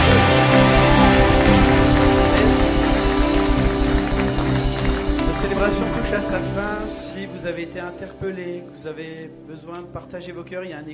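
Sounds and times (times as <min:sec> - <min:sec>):
audience applauding: 0:00.0 - 0:07.0
sustained droning musical tones: 0:00.0 - 0:08.0
speech: 0:06.3 - 0:10.9.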